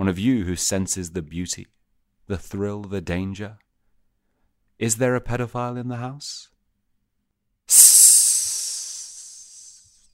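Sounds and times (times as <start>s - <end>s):
speech: 0.0s - 3.6s, 4.8s - 6.5s, 7.7s - 8.2s
loud airy hiss: 7.7s - 10.0s.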